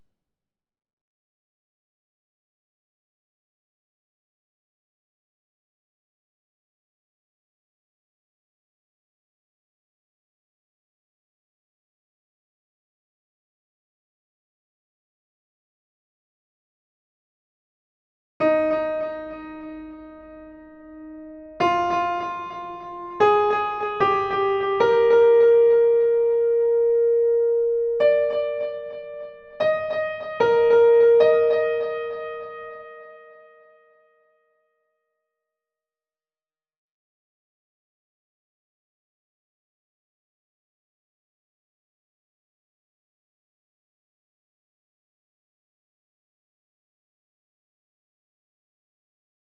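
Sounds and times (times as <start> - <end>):
piano: 18.4 - 34.4.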